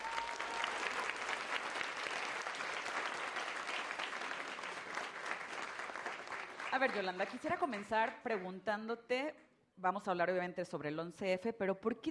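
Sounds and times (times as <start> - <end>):
audience applause: 0.0 - 7.9
speech: 6.7 - 12.0.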